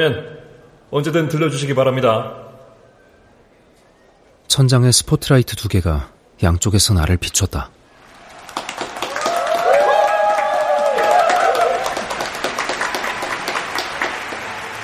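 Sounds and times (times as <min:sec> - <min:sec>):
speech: 0:00.0 - 0:02.4, 0:04.5 - 0:07.8
audience applause: 0:07.9 - 0:14.8.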